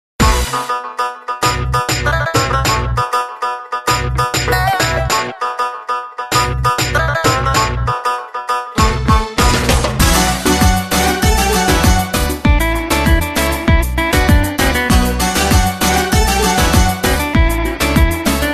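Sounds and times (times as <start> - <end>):
Balkan music: 0.2 - 18.5.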